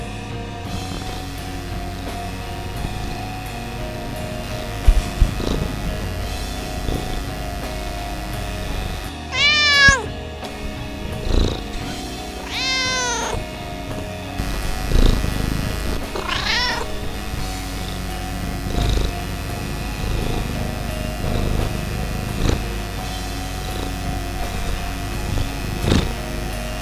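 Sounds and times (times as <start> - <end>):
house cat purring: 0.6 - 26.7
house cat meowing: 9.3 - 10.1, 12.4 - 13.4, 16.2 - 17.0.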